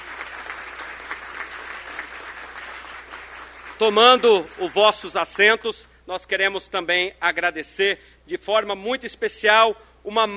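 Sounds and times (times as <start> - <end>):
crowd applauding: 0.0 - 5.0
speech: 3.8 - 10.3.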